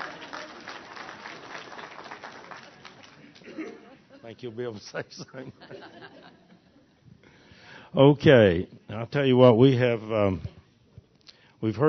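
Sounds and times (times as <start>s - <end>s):
audience applause: 0.0s - 3.6s
laughter: 3.2s - 6.9s
speech: 4.3s - 6.3s, 7.9s - 10.5s, 11.6s - 11.8s.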